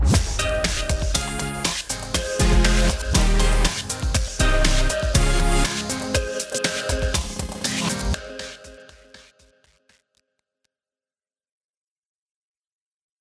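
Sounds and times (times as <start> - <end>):
groove music: 0.1 - 9.8.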